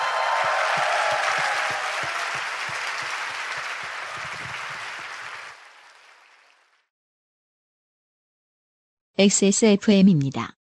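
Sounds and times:
audience applause: 0:00.0 - 0:06.9
speech: 0:09.2 - 0:10.6.

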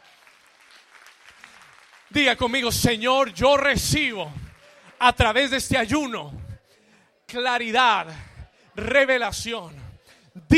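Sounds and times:
audience applause: 0:00.0 - 0:05.6
speech: 0:02.1 - 0:04.4, 0:05.0 - 0:06.4, 0:07.3 - 0:09.8.

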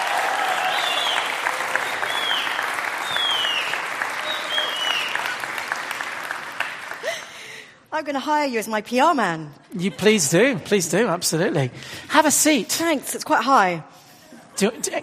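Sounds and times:
audience applause: 0:00.0 - 0:07.4
speech: 0:08.0 - 0:14.0, 0:14.6 - 0:15.0.

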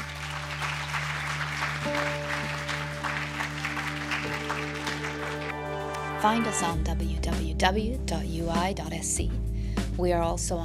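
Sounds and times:
audience applause at a Stockholm School of Economics seminar: 0:00.0 - 0:06.7
speech: 0:06.2 - 0:10.6.

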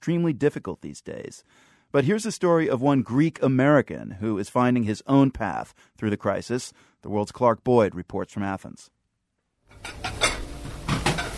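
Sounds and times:
speech: 0:00.0 - 0:09.0
pots and dishes clattering in a busy restaurant kitchen: 0:09.7 - 0:11.3.

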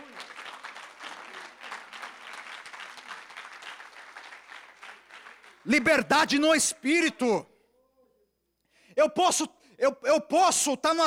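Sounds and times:
audience applause: 0:00.0 - 0:05.9
speech: 0:05.6 - 0:07.5, 0:09.0 - 0:11.0.

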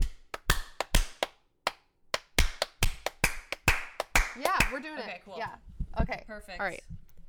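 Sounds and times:
sharp bright hand claps: 0:00.0 - 0:04.9
speech: 0:04.4 - 0:07.0.

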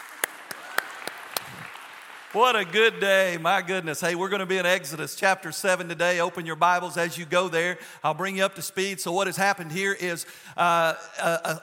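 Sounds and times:
crisp hand claps: 0:00.0 - 0:02.8
speech: 0:02.3 - 0:11.6.

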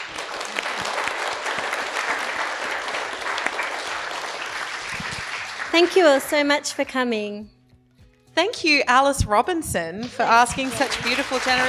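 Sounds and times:
audience applause: 0:00.0 - 0:06.5, 0:10.3 - 0:11.6
speech: 0:05.8 - 0:07.6, 0:08.4 - 0:11.6.

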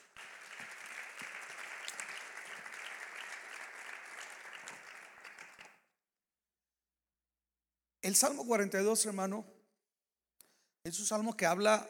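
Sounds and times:
audience applause: 0:00.0 - 0:05.8
speech: 0:08.1 - 0:09.6, 0:10.8 - 0:11.8.

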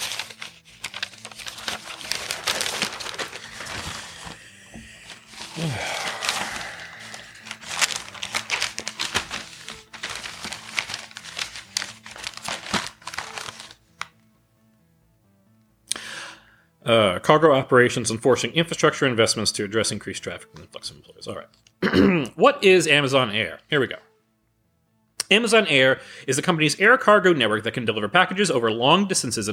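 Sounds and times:
paper pages being turned and crinkled: 0:00.0 - 0:14.2
speech: 0:05.6 - 0:06.0, 0:16.9 - 0:24.1, 0:25.3 - 0:29.5.

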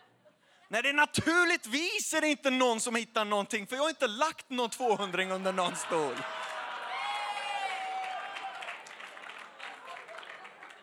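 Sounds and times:
speech: 0:00.7 - 0:06.4
laughter: 0:04.1 - 0:07.8, 0:09.7 - 0:10.8
audience applause: 0:05.4 - 0:10.8.

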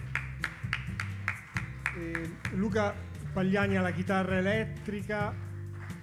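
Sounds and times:
audience applause: 0:00.0 - 0:02.9
speech: 0:02.0 - 0:05.5.

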